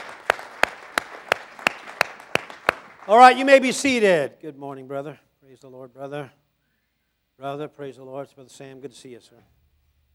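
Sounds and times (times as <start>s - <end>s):
audience clapping: 0.0s - 4.2s
speech: 3.1s - 6.4s, 7.4s - 9.6s.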